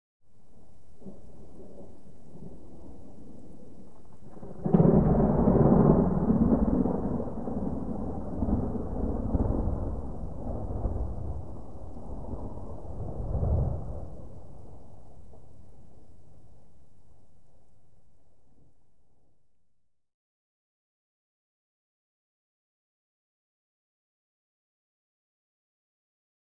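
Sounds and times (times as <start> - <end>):
distant low thunder rumble: 0.6 - 17.7.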